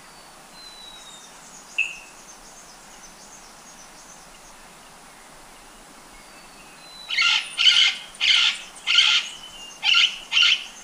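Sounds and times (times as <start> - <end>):
White-capped parrot screeching in Ecuador: 7.2 - 10.6.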